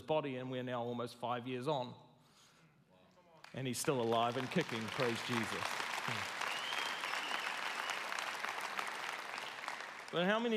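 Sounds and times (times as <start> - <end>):
speech: 0.1 - 2.0, 3.5 - 6.3, 10.1 - 10.5
audience applause: 3.8 - 10.5.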